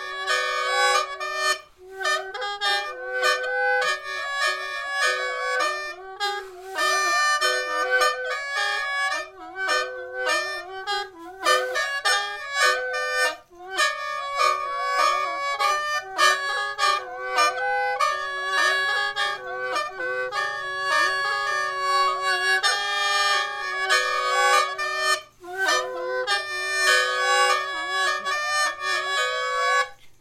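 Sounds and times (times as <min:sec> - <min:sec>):
Lahu meuneu fulu free reed pipes duet: 0:00.0 - 0:30.1.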